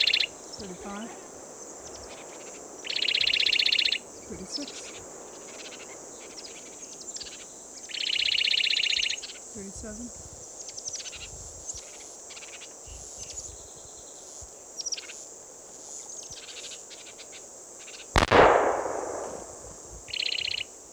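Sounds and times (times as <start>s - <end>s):
insects chirping: 0.0s - 20.6s
speech: 0.6s - 1.3s, 4.3s - 4.9s, 9.6s - 10.4s
hunting gun gunshot: 18.2s - 19.8s.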